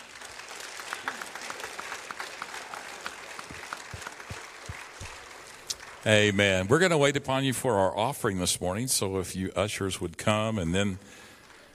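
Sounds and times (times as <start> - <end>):
audience applause: 0.0 - 6.7, 11.0 - 11.7
speech: 6.0 - 11.2.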